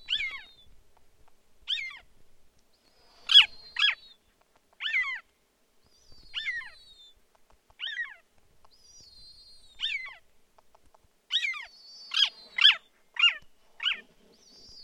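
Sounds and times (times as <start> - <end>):
snowy owl calling: 0.0 - 0.7, 1.7 - 2.1, 3.2 - 4.2, 4.8 - 5.2, 5.9 - 7.2, 7.8 - 10.2, 11.3 - 14.8.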